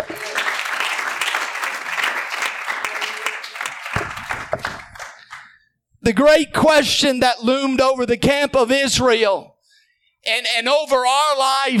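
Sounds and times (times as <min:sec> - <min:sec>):
audience applause in church: 0:00.0 - 0:05.6
speech: 0:06.1 - 0:09.5, 0:10.3 - 0:11.7.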